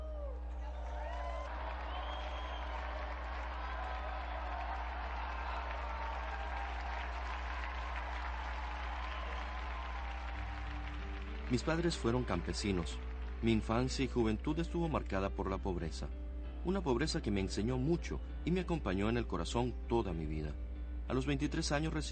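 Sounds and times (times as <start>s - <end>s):
applause: 0.0s - 14.6s
speech: 11.5s - 22.1s.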